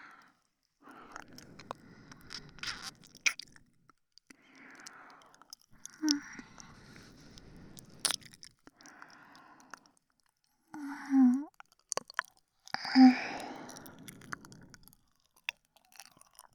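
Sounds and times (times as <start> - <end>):
ASMR ear licking sounds: 0.9 - 16.5.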